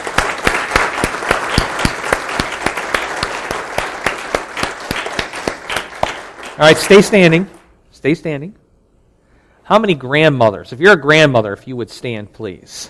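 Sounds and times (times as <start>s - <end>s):
round of applause: 0.0s - 7.2s
speech: 6.6s - 8.6s, 9.7s - 12.8s.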